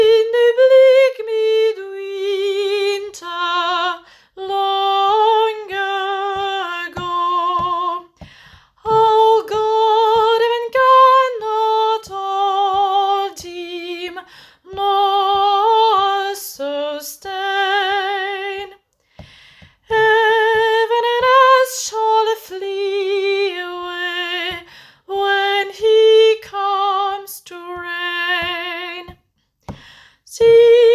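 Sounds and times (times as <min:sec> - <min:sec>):
soprano singing a carol: 0:00.0 - 0:18.8, 0:19.7 - 0:30.9.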